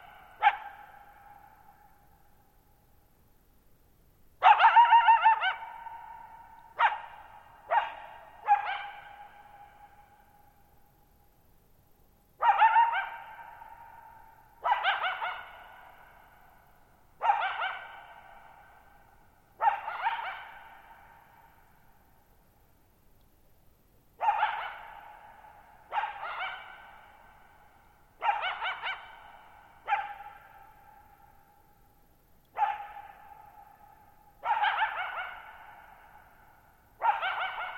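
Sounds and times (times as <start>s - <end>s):
coyote barking: 0.0s - 1.8s, 4.4s - 10.2s, 12.4s - 16.3s, 17.2s - 18.9s, 19.6s - 21.6s, 24.2s - 27.6s, 28.2s - 31.3s, 32.5s - 37.7s.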